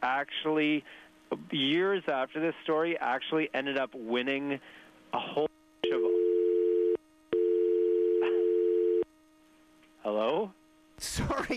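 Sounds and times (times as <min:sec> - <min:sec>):
speech: 0:00.1 - 0:06.0, 0:10.0 - 0:11.5
telephone dial tone after a failed call transfer: 0:05.9 - 0:09.0.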